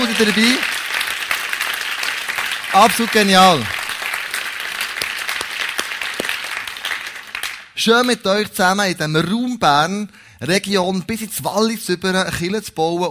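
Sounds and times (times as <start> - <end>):
audience applause: 0.0 - 7.7
speech: 0.1 - 0.8, 2.8 - 3.8, 7.8 - 13.0.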